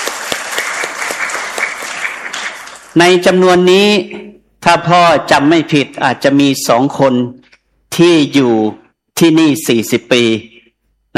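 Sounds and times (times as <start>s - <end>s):
audience applause: 0.0s - 3.0s
speech: 3.0s - 10.5s.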